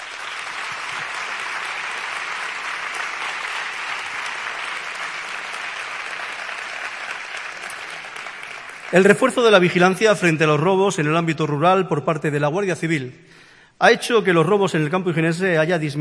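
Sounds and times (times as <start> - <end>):
strong applause from audience: 0.0 - 10.3
speech: 8.9 - 16.0.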